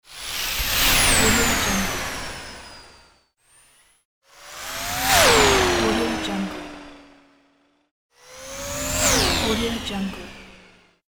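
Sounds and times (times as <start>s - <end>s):
spaceship: 0.8s - 2.4s, 4.5s - 7.2s, 8.4s - 10.7s.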